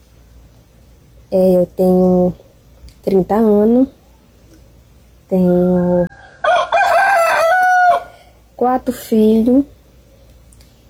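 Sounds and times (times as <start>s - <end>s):
speech: 1.3s - 2.4s, 3.0s - 4.0s, 5.3s - 6.3s, 8.6s - 9.8s
rooster crowing: 5.8s - 8.4s.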